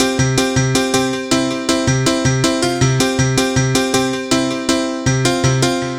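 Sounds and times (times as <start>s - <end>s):
piano loops: 0.0s - 5.9s.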